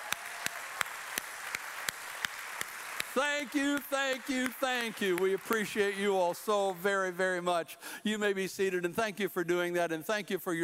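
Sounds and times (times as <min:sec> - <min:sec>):
crowd cheering: 0:00.0 - 0:05.6
audience applauding: 0:00.0 - 0:06.9
speech: 0:03.2 - 0:10.6.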